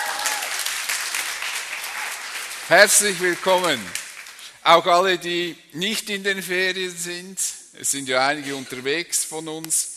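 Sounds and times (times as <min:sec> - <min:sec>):
congregation applauding during a church service: 0:00.0 - 0:05.3
speech: 0:02.7 - 0:04.0, 0:04.6 - 0:09.9.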